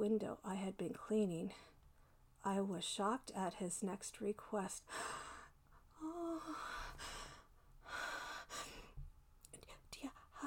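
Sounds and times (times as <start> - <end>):
speech: 0.0 - 1.8, 2.4 - 5.3
soft breathing next to someone's ear: 4.8 - 10.4.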